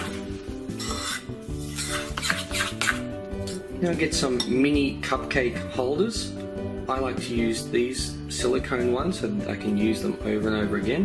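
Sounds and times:
spoon stirring chocolate and coconut mixture in a bowl: 0.0 - 4.6
speech: 3.8 - 11.0.

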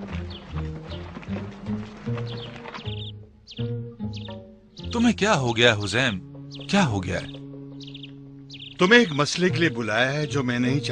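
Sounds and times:
running horse hooves: 0.0 - 4.4
speech: 4.9 - 7.4, 8.8 - 10.9.

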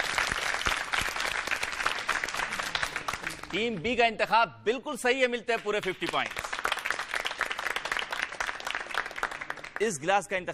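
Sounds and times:
loud applause: 0.0 - 3.7, 5.9 - 9.9
speech: 3.5 - 6.4, 9.8 - 10.5.

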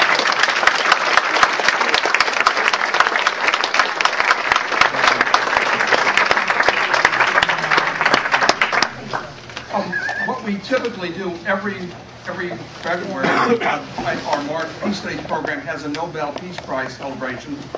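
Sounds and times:
audience applause: 0.0 - 10.3
speech: 10.6 - 17.7.

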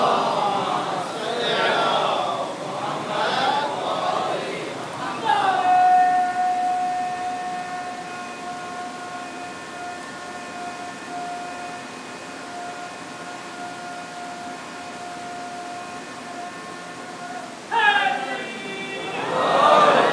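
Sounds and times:
crowd voices: 0.0 - 11.8, 14.5 - 20.1
man loudly shouting a religious slogan at a gathering: 5.1 - 7.0, 17.7 - 19.4.

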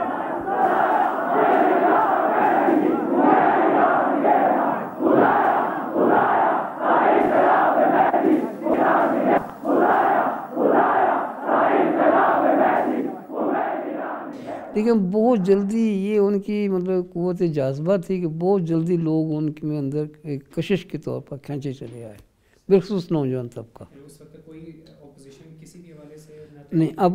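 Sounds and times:
large crowd chanting a slogan in praise of Khomeini: 0.0 - 15.7
speech: 14.8 - 27.1.

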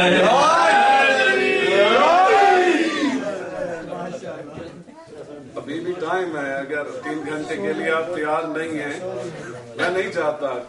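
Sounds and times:
speech: 0.0 - 0.4, 6.2 - 10.6
crowd shouting a religious slogan at a religious gathering on Eid night: 0.0 - 3.5.

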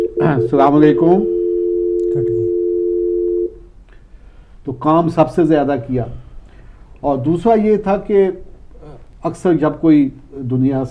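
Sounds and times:
speech: 0.2 - 1.4, 2.1 - 2.4, 4.7 - 6.2, 7.0 - 8.5, 9.2 - 10.8
telephone dial tone as a phone call is connected: 1.4 - 3.5.

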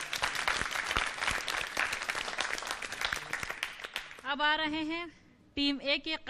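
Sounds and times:
loud applause: 0.0 - 4.2
speech: 4.3 - 6.2.

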